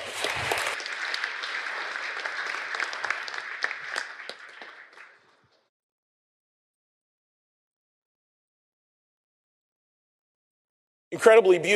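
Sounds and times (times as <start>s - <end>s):
audience applause: 0.0s - 5.7s
speech: 11.2s - 11.7s.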